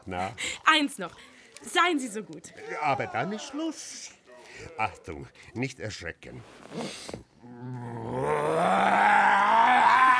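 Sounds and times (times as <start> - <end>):
speech: 0.1 - 9.0
voice imitating a sabre-toothed tiger roar: 7.4 - 10.1.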